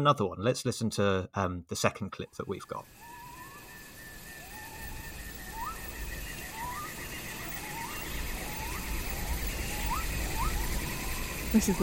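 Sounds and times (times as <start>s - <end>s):
speech: 0.0s - 3.1s, 11.5s - 11.8s
animal chorus: 2.4s - 11.8s
cicadas: 2.4s - 11.8s.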